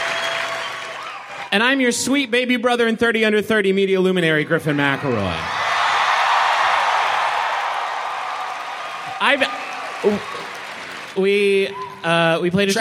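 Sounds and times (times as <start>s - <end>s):
crowd applause: 0.0s - 1.6s, 4.7s - 12.0s
speech: 1.5s - 5.6s, 9.2s - 10.4s, 11.2s - 12.7s.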